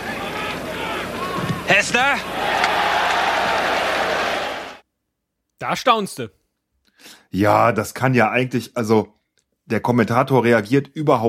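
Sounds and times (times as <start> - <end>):
stadium crowd cheering in background: 0.0 - 4.8
speech: 1.7 - 2.5, 5.6 - 6.4, 7.0 - 11.2.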